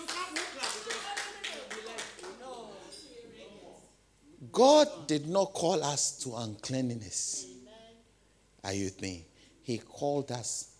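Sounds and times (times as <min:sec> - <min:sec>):
audience clapping: 0:00.0 - 0:02.6
speech: 0:04.5 - 0:07.5, 0:08.6 - 0:10.7.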